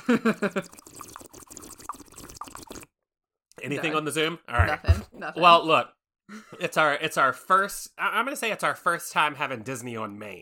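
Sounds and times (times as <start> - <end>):
speech: 0.1 - 0.9, 3.7 - 10.3
bubbling water noises like a bong: 0.6 - 2.9.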